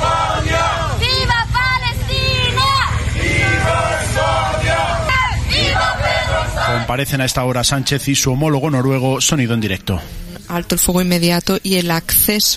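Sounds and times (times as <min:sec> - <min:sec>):
small crowd of demonstrators cheering: 0:00.0 - 0:07.9
speech: 0:06.9 - 0:12.5.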